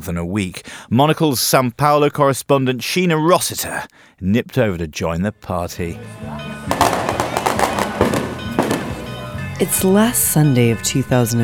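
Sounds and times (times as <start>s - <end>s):
speech: 0.0s - 6.8s, 9.6s - 11.4s
fireworks exploding at a celebration: 6.7s - 9.9s.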